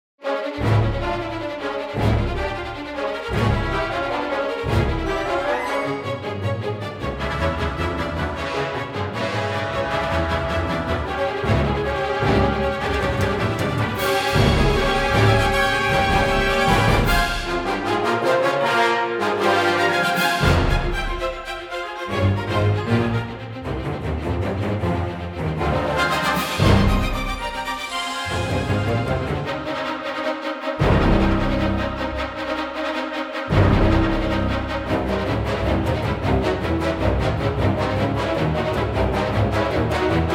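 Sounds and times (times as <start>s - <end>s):
brass instruments: 0.2s - 40.3s.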